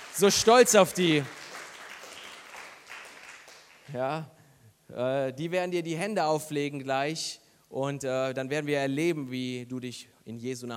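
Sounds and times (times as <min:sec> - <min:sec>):
audience applause: 0:00.0 - 0:03.9
speech: 0:00.2 - 0:01.4, 0:03.9 - 0:10.7.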